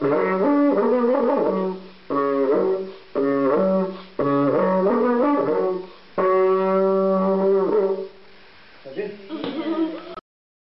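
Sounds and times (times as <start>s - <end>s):
transverse flute: 0.0s - 8.2s.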